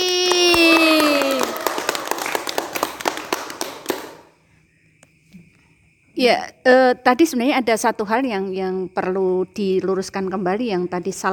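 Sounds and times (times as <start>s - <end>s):
audience applause: 0.0s - 4.3s
speech: 6.2s - 11.3s.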